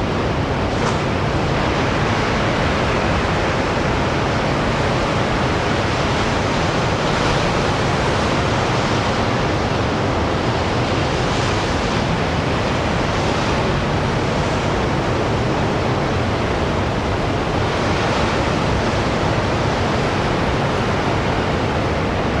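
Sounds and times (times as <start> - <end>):
ocean waves roaring against rocky cliffs: 0.0 - 22.3.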